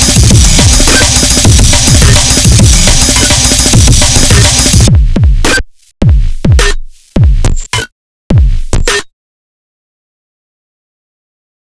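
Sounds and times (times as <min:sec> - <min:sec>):
drums: 0:00.0 - 0:09.1.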